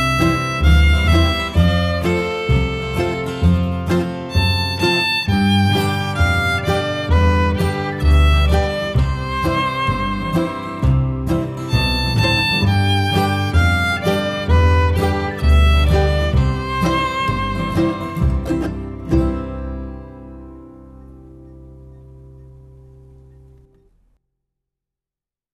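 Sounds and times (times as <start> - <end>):
fiddle playing: 0.0 - 24.0.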